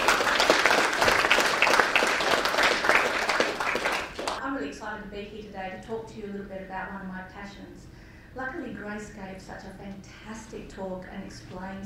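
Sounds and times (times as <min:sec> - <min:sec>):
audience applauding to welcome a speaker: 0:00.0 - 0:04.4
speech: 0:05.2 - 0:11.8.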